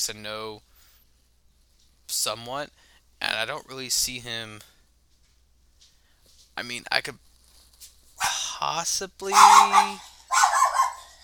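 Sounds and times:
speech: 0:00.0 - 0:00.7, 0:02.1 - 0:04.8, 0:06.6 - 0:07.3, 0:08.6 - 0:10.1
faint hum: 0:00.0 - 0:11.2
dog barking: 0:09.3 - 0:11.2.

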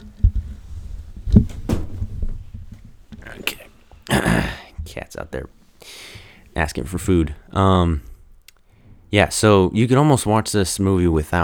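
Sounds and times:
door closing: 0:01.3 - 0:03.6
speech: 0:05.0 - 0:06.0, 0:06.6 - 0:08.1, 0:09.1 - 0:11.4.

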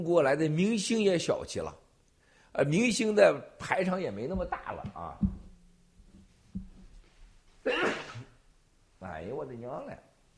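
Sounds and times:
speech: 0:00.0 - 0:01.8, 0:02.6 - 0:05.4, 0:07.6 - 0:08.0, 0:09.0 - 0:10.1
sneeze: 0:07.6 - 0:08.4.

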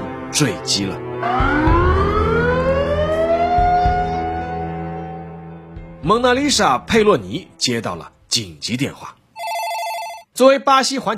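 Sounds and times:
speech: 0:00.3 - 0:01.8, 0:06.1 - 0:09.2, 0:10.4 - 0:11.1
alarm siren: 0:01.2 - 0:05.0.

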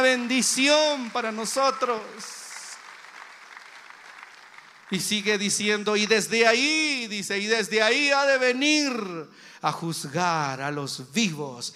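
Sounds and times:
applause: 0:00.0 - 0:06.9
speech: 0:00.1 - 0:02.4, 0:04.9 - 0:11.7.

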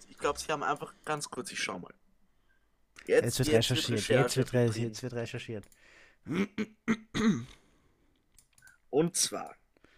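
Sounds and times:
speech: 0:00.2 - 0:02.0, 0:03.1 - 0:07.6, 0:08.9 - 0:09.6
small low burp: 0:06.3 - 0:07.6.

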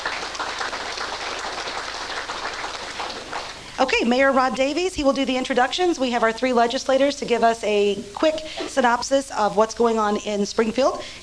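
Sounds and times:
round of applause: 0:00.0 - 0:03.7
speech: 0:03.8 - 0:11.2.

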